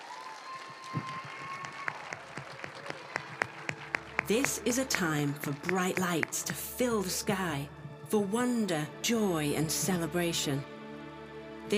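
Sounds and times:
audience applause: 0.0 - 6.6
speech: 4.3 - 10.7.

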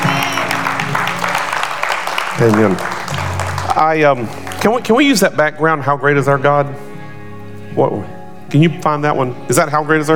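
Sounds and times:
audience clapping: 0.0 - 5.3
speech: 2.4 - 3.1, 3.8 - 6.9, 7.7 - 10.1.

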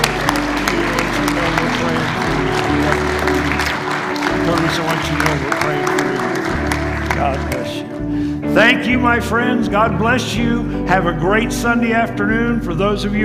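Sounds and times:
murmur of voices: 0.0 - 8.0
audience clapping: 0.0 - 8.3
speech: 8.6 - 13.2.

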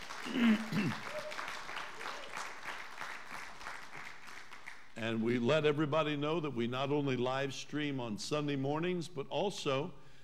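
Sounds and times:
audience round of applause: 0.0 - 5.0
speech: 0.2 - 1.3, 5.0 - 10.0.

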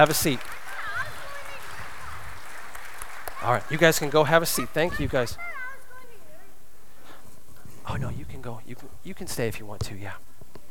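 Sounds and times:
speech: 0.0 - 0.5, 3.4 - 5.5, 7.9 - 10.3
group applauding: 0.0 - 5.4.

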